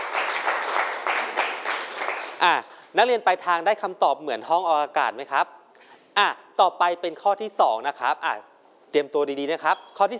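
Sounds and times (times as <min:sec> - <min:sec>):
classroom applause: 0:00.0 - 0:02.6
speech: 0:02.4 - 0:05.6, 0:06.2 - 0:10.1.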